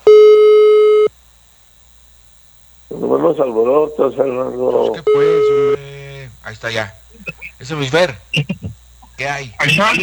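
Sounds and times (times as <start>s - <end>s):
telephone busy signal while dialling: 0.0s - 1.1s, 5.0s - 5.8s
laughter: 2.9s - 10.0s
speech: 3.2s - 5.8s, 6.5s - 10.0s.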